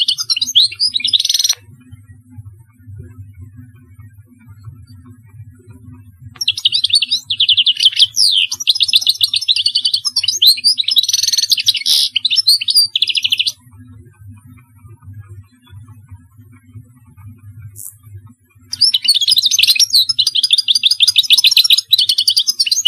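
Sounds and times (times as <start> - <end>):
European goldfinch song of liquid twitters and trills: 0.0 - 1.6, 6.4 - 13.6, 18.7 - 22.8
faint low hum: 0.0 - 22.8.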